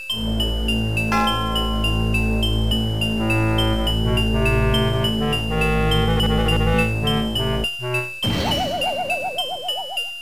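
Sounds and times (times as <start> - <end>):
game over sound effects: 0.2 - 10.1.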